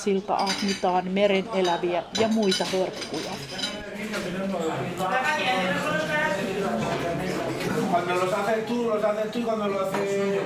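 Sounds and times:
speech: 0.0 - 7.1, 8.0 - 10.4
murmur of many overlapping voices in a busy café: 0.0 - 10.4
cups and glasses clinking in a café: 0.4 - 0.9, 1.6 - 5.5.

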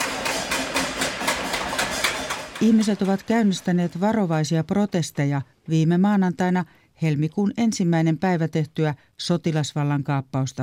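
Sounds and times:
pots and pans banging on balconies in Yangon: 0.0 - 4.2
speech: 2.6 - 10.6.

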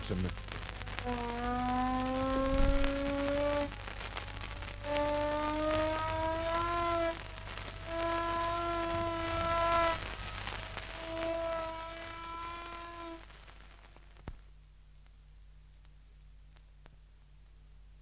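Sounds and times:
air raid siren: 0.6 - 13.3.

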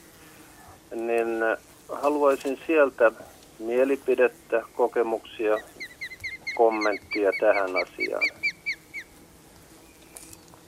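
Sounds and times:
faint steady hiss: 0.0 - 10.6
speech: 1.0 - 5.7, 6.6 - 8.4
osprey whistled chirps: 4.6 - 9.2.

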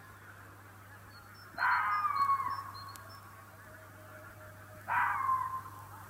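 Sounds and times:
low steady hum: 0.0 - 6.0
red fox mating scream: 1.6 - 2.8, 4.9 - 5.8.

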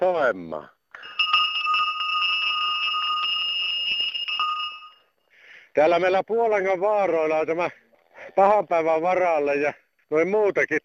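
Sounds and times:
speech: 0.3 - 1.1, 5.8 - 10.8
cow bells ringing: 0.9 - 5.3.

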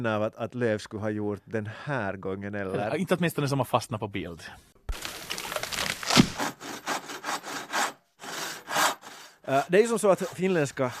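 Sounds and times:
speech: 0.0 - 5.0, 9.5 - 10.9
hand saw cutting wood: 6.0 - 10.9.

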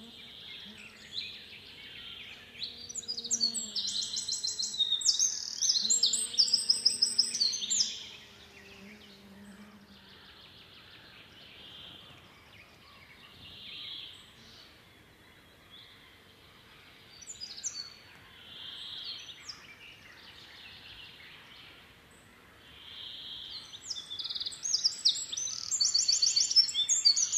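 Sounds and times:
faint bird sounds: 0.0 - 27.3
Eurasian wren singing: 0.6 - 9.8, 23.8 - 27.3.

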